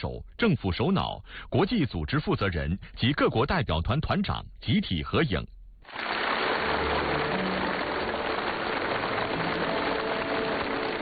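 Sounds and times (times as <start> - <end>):
speech: 0.0 - 6.2
warm applause from a large crowd: 5.9 - 11.0.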